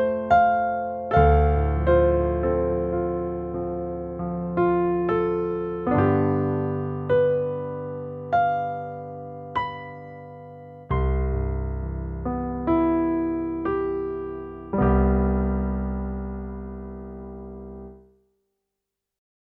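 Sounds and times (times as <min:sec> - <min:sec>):
concert piano sound on a keyboard: 0:00.0 - 0:18.1.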